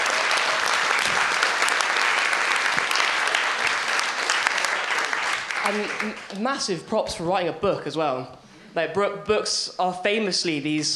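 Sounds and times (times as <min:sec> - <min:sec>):
audience applause: 0:00.0 - 0:06.4
speech: 0:05.7 - 0:10.9.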